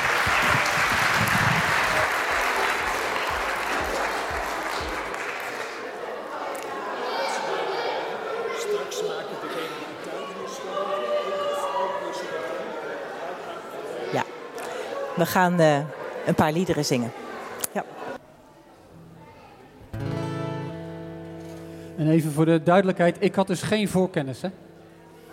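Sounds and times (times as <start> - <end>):
audience applause: 0.0 - 7.0
crowd murmur and voices: 0.0 - 21.8, 24.5 - 25.3
speech: 15.2 - 17.2, 22.1 - 24.7.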